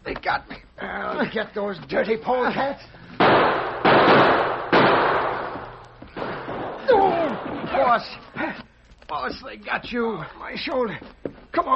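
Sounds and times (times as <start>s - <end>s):
speech: 0.2s - 4.4s, 7.8s - 11.7s
rifle gunshots: 3.2s - 7.6s.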